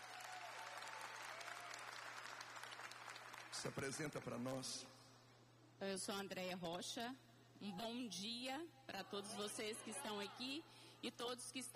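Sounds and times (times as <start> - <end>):
audience applause: 0.0 - 4.4
speech: 3.6 - 5.0, 5.8 - 11.7.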